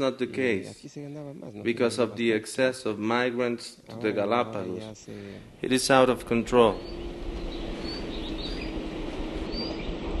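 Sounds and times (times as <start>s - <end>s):
speech: 0.0s - 7.2s
birds chirping outdoors at the Charles Darwin Research Station: 5.0s - 10.1s.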